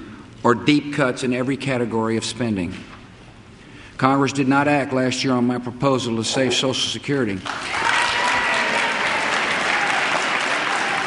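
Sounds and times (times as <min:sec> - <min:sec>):
speech: 0:00.4 - 0:02.9, 0:04.0 - 0:07.9
applause in Congress: 0:07.4 - 0:11.0
Democrats cheering in Congress: 0:07.5 - 0:11.0.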